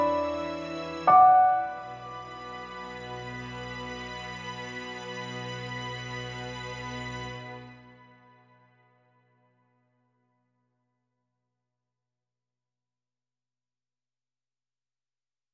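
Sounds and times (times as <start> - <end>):
piano: 0.0 - 8.3.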